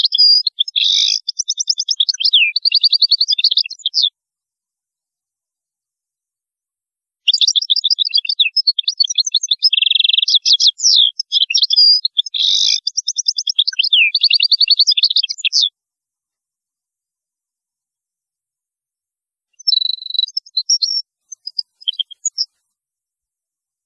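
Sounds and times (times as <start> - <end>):
European goldfinch twittering: 0.0 - 4.1, 7.3 - 15.7, 19.6 - 22.5.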